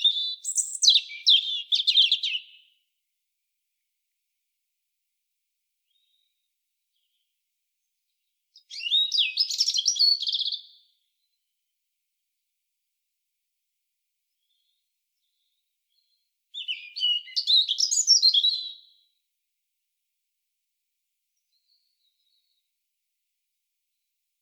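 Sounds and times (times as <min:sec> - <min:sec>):
European robin singing: 0:00.0 - 0:02.8, 0:08.6 - 0:10.9, 0:14.4 - 0:19.1.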